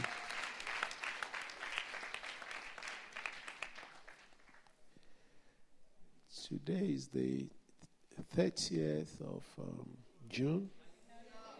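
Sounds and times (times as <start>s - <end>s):
audience clapping: 0.0s - 4.8s
speech: 6.5s - 7.6s, 8.3s - 10.8s.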